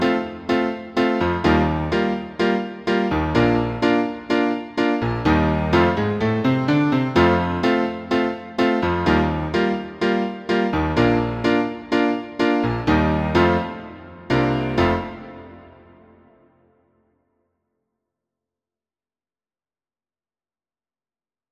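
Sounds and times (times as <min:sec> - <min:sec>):
piano: 0:00.0 - 0:17.0.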